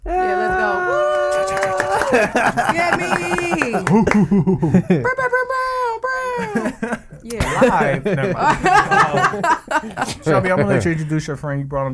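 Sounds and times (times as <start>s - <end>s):
laughter: 0.0s - 5.5s, 6.3s - 11.2s
hand clap sound effect: 1.3s - 2.3s
speech: 2.1s - 5.4s, 6.4s - 11.9s.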